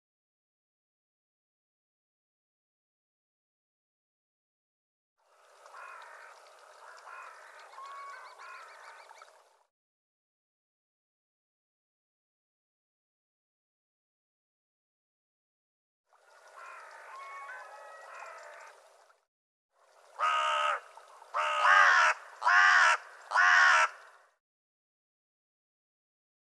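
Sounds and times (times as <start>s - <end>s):
bird giving a harsh raspy caw: 5.7s - 9.2s, 16.5s - 18.8s, 20.2s - 24.4s.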